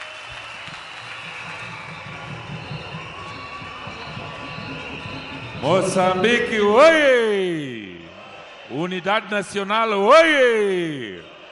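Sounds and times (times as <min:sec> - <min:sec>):
crowd clapping: 0:00.0 - 0:08.6
crowd cheering: 0:00.0 - 0:11.5
speech: 0:05.6 - 0:07.7, 0:08.7 - 0:11.3.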